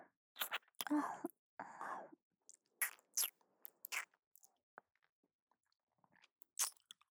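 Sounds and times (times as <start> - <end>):
ear licking in the left ear: 0.4 - 0.9, 2.8 - 4.1, 6.6 - 6.8.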